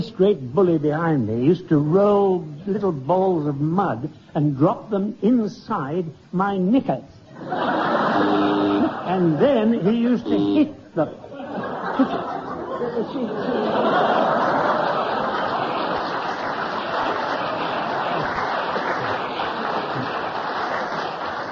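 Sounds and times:
speech: 0.2 - 11.3, 12.0 - 14.2
laughter: 7.3 - 21.3
audience applause: 13.5 - 21.5.

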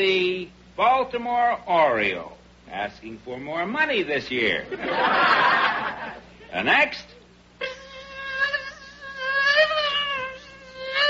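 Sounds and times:
speech: 0.0 - 7.2
laughter: 4.6 - 6.3
person imitating a mosquito with high-pitched buzzing whine: 6.5 - 11.0.

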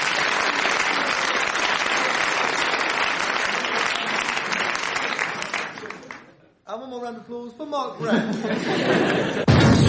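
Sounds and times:
audience applause: 0.0 - 6.3
laughter: 8.0 - 9.6.

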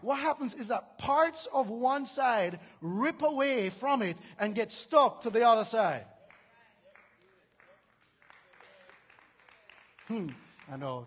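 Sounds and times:
speech: 0.0 - 6.1, 10.1 - 11.0
small audience hand clapping: 6.2 - 11.0.

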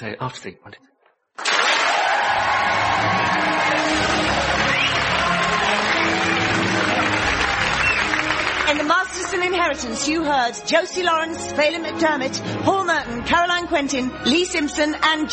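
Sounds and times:
speech: 0.0 - 7.4, 8.7 - 15.3
large crowd applause: 1.4 - 10.0.

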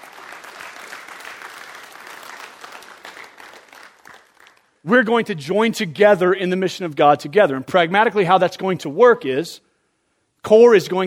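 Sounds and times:
audience clapping: 0.0 - 4.8
speech: 4.8 - 9.6, 10.4 - 11.0.

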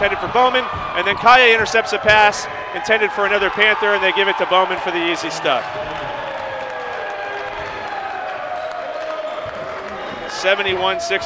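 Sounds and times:
ball bounces: 0.0 - 2.2
speech: 0.0 - 6.0, 10.4 - 11.2
arena crowd roar at a basketball game: 0.0 - 11.2.

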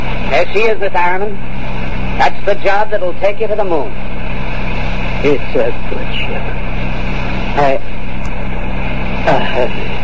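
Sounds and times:
car driving: 0.0 - 10.0
speech: 0.3 - 1.5, 2.2 - 4.2, 5.2 - 6.6, 7.6 - 7.9, 9.3 - 10.0.

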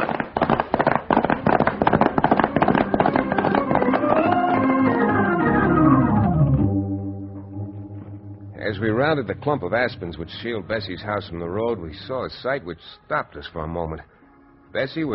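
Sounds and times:
gunfire from a pitched battle at a farmhouse: 0.0 - 4.1
sustained tones: 3.8 - 12.7
speech: 9.1 - 15.1.

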